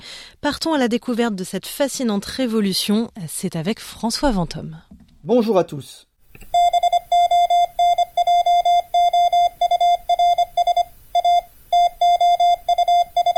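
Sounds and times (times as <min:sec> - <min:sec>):
speech: 0:00.4 - 0:06.1
Morse code beeps: 0:06.5 - 0:13.3.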